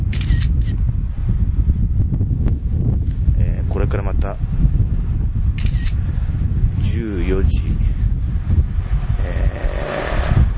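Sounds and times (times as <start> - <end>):
wind rustling in a mountain village: 0.0 - 10.5
camera shutter clicking in a mountain village: 0.1 - 0.8, 5.6 - 6.0
speech: 7.5 - 7.9.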